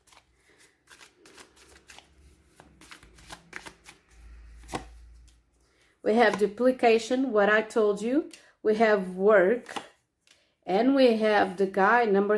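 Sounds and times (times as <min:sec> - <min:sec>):
tarot cards shuffling: 0:00.0 - 0:06.5
speech: 0:06.0 - 0:09.8, 0:10.7 - 0:12.3.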